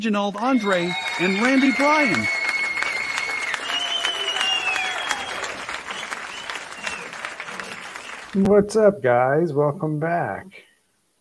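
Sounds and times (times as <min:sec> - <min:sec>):
speech: 0:00.0 - 0:02.4, 0:08.4 - 0:10.6
canned applause from a fake studio audience: 0:00.4 - 0:08.8
faint whistle-like tones: 0:00.6 - 0:07.2.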